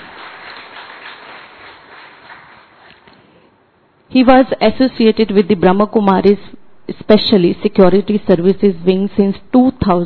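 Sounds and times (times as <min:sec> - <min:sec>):
audience applause: 0:00.0 - 0:03.0
speech: 0:04.1 - 0:10.0.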